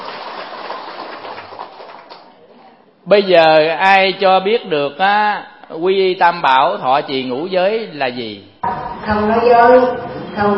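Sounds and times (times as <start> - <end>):
crowd clapping: 0.0 - 2.4
speech: 3.1 - 10.5.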